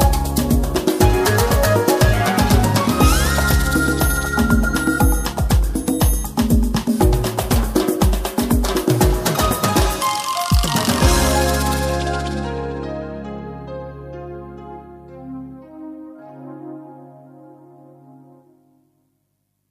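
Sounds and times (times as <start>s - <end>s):
latin style music: 0.0s - 13.8s.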